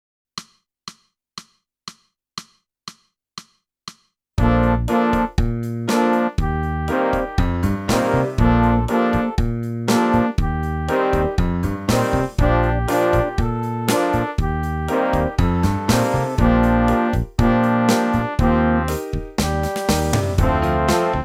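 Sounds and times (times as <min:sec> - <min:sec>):
clarinet: 0:04.4 - 0:21.2.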